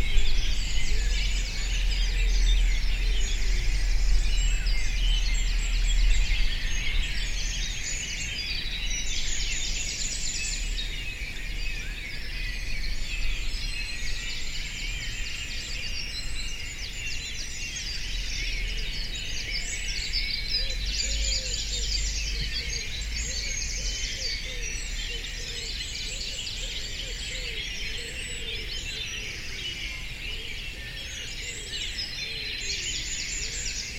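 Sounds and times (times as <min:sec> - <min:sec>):
low rumble: 0:00.0 - 0:07.8
dawn chorus of many birds by the Avon river: 0:00.0 - 0:33.9.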